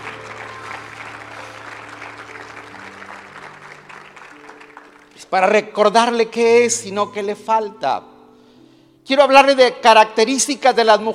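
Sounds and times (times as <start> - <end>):
audience applause: 0.0 - 5.3
speech: 5.3 - 8.1, 9.1 - 11.1.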